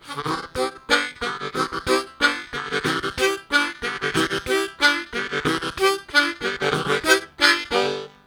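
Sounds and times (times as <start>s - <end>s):
harmonica: 0.0s - 8.2s
ragtime bass: 0.0s - 8.2s.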